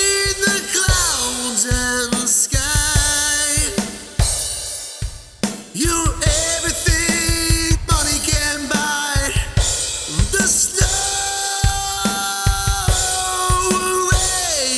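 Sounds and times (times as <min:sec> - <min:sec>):
lead vocals: 0:00.0 - 0:14.7.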